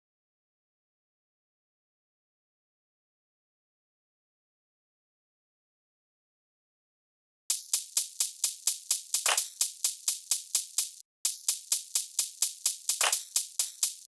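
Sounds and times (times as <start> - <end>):
drum loop: 7.5 - 14.1
shaker: 7.5 - 14.1.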